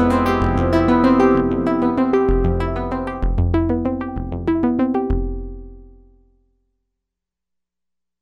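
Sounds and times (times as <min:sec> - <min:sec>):
synth arpeggiator: 0:00.0 - 0:05.6.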